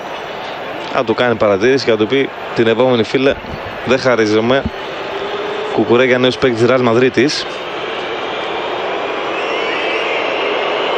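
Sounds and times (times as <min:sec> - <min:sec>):
huge stadium crowd booing: 0:00.0 - 0:10.9
speech: 0:00.9 - 0:05.0, 0:05.8 - 0:07.7.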